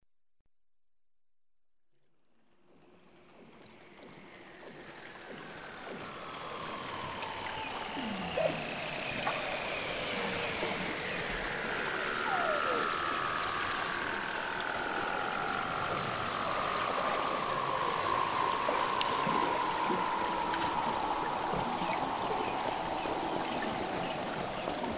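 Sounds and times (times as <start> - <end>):
Weddell seal underwater whistles: 5.9 - 24.9.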